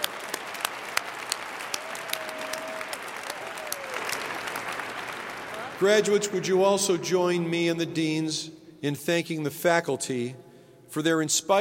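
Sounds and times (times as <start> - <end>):
audience applause for graduates' families: 0.0 - 6.1
speech: 5.8 - 11.5.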